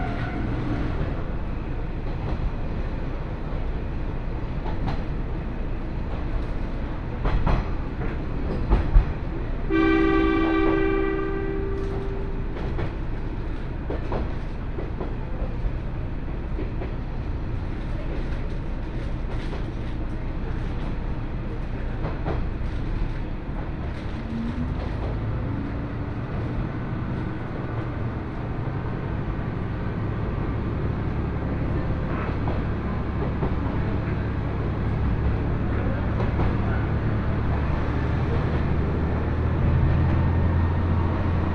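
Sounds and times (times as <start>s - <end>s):
Kanto Railway Joso Line rapid train rumble: 0.0s - 41.5s
train horn blast: 9.7s - 12.4s.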